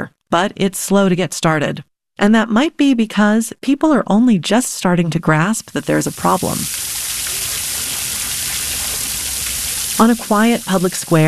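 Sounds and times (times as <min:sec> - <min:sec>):
speech: 0:00.0 - 0:07.0, 0:10.0 - 0:11.2
big public fountain water rushing on a square in Munich: 0:05.6 - 0:11.2.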